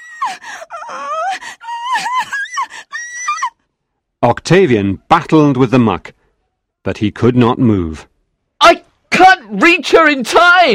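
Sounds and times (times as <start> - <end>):
girl crying and wailing: 0.0 - 3.6
speech: 0.3 - 2.4, 4.2 - 6.2, 6.8 - 10.7.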